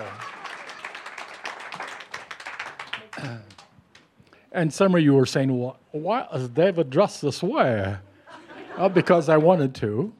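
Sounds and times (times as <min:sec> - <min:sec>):
audience clapping: 0:00.0 - 0:04.1
speech: 0:03.2 - 0:03.5, 0:04.5 - 0:08.1, 0:08.8 - 0:10.1
laughter: 0:08.2 - 0:09.8.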